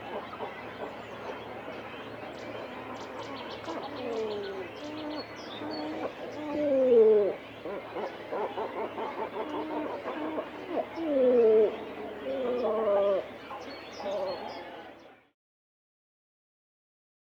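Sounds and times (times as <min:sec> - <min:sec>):
cormorant call: 0:05.6 - 0:15.0.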